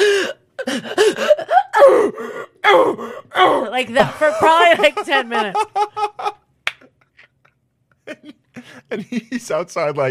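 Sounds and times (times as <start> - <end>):
person imitating loud sobbing and wailing: 0.0 - 4.7
speech: 3.7 - 6.1, 8.9 - 10.1
laughter: 3.9 - 6.5, 7.4 - 9.5.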